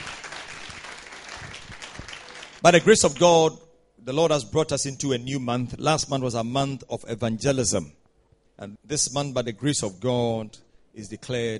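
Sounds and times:
audience applause: 0.0 - 2.6
speech: 2.6 - 8.0, 8.6 - 11.5.

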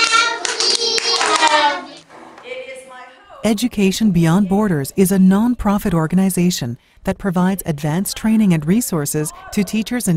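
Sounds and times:
children clapping: 0.0 - 2.1
speech: 3.4 - 10.1.

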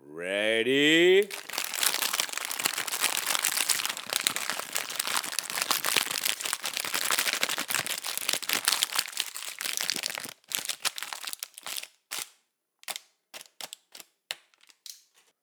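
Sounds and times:
speech: 0.2 - 1.5
plastic bag crumpled imitating a string of firecrackers: 1.2 - 12.0.

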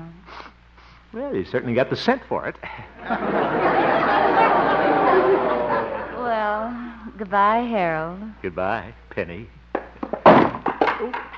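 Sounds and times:
speech: 1.2 - 3.4, 7.2 - 9.6, 11.0 - 11.3
laughter: 2.6 - 6.8
wooden chair tipping over onto the floor: 9.9 - 11.3.

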